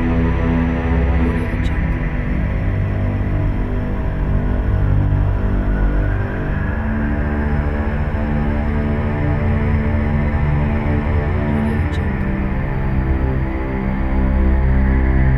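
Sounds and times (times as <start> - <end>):
dark atmospheric soundscape: 0.0 - 15.3.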